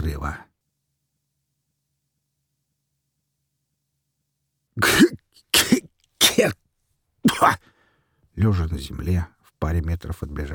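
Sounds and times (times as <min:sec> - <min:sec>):
speech: 0:00.0 - 0:00.5, 0:06.4 - 0:06.6, 0:07.4 - 0:07.7, 0:08.4 - 0:10.5
stalkers coughing on the ground after an explosion: 0:04.8 - 0:06.6, 0:07.3 - 0:07.6.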